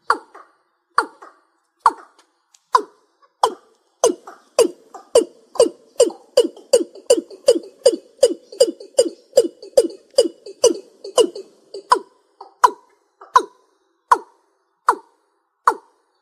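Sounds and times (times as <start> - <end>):
East Asian bullfrog croaking: 2.8 - 14.3.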